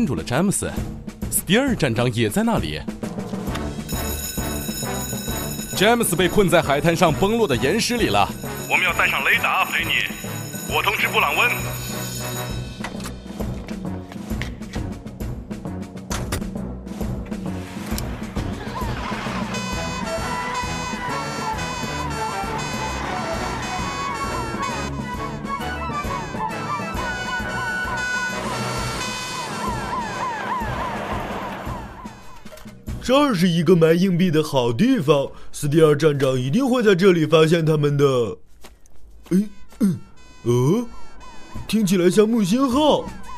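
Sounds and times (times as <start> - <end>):
speech: 0.0 - 3.2, 5.8 - 11.9, 33.1 - 38.4, 39.3 - 43.2
busy music: 0.0 - 37.8, 39.2 - 43.3
fire engine siren: 18.7 - 32.2, 40.2 - 42.2.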